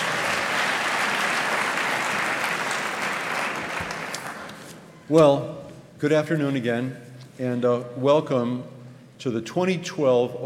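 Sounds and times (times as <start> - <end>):
large audience clapping: 0.0 - 4.8
speech: 5.1 - 10.4.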